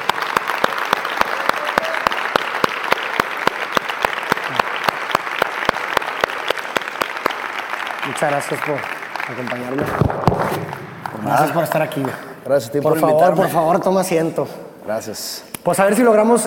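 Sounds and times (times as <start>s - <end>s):
audience applause: 0.0s - 12.4s
speech: 8.1s - 16.4s.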